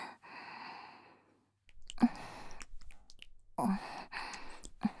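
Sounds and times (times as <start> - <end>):
deep kissing: 1.7 - 4.9
ear licking: 1.7 - 4.9.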